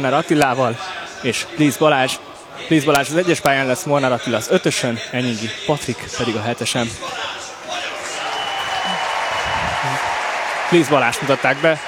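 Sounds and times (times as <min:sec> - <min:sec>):
speech: 0:00.0 - 0:07.4, 0:10.7 - 0:11.8
large stadium crowd applauding athlete introduction: 0:07.6 - 0:11.8.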